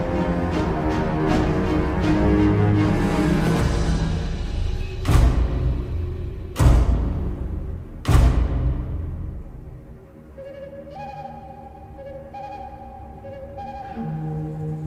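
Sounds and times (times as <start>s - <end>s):
forest battle music: 0.0s - 9.8s.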